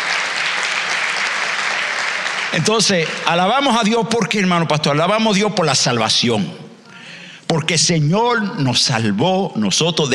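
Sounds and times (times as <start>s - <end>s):
audience applauding loudly: 0.0s - 3.8s
speech: 2.6s - 6.6s, 7.5s - 10.1s.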